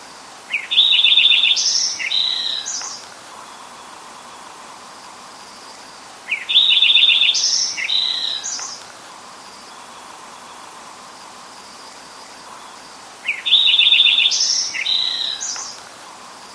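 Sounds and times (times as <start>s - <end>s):
soft hiss: 0.0s - 16.5s
Lincoln's sparrow singing bubbly song: 0.5s - 3.1s, 6.3s - 8.8s, 12.4s - 15.8s.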